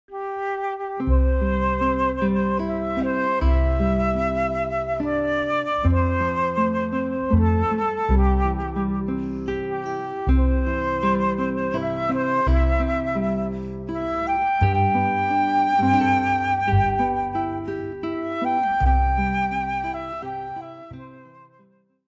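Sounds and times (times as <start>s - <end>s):
guitar, flute and bass trio: 0.1s - 21.6s.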